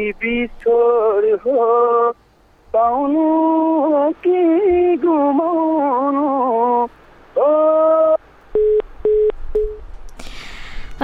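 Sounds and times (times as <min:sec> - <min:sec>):
speech: 0:00.0 - 0:06.9
hissy noise: 0:00.0 - 0:09.5, 0:10.1 - 0:11.0
telephone busy tone after the caller's line disconnects: 0:08.6 - 0:09.8.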